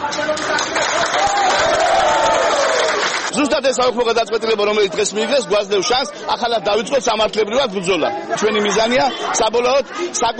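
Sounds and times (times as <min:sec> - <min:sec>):
Gonio residents cheering and clapping: 0:00.0 - 0:03.6
speech: 0:03.4 - 0:10.3.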